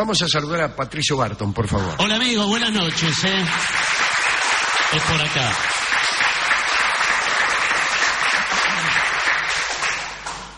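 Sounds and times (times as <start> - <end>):
speech: 0.0 - 4.0, 4.9 - 5.8
hands clapping: 2.6 - 10.5.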